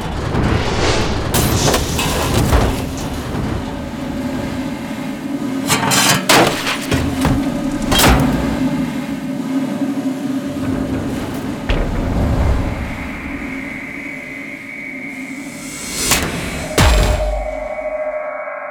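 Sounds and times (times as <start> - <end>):
heavy factory machinery grinding and humming: 0.0 - 18.0
bright mechanical whine: 0.0 - 18.6
sharp metal clanks and thuds: 1.4 - 8.9, 10.4 - 13.9.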